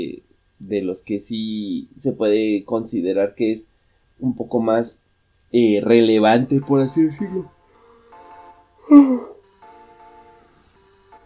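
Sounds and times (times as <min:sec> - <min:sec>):
speech: 0:00.7 - 0:07.6, 0:08.9 - 0:09.3
person yawning: 0:08.8 - 0:09.4.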